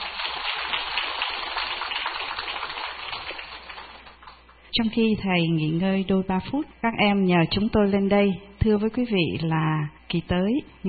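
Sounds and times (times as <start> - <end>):
audience applause: 0.0 - 4.4
speech: 4.8 - 10.8.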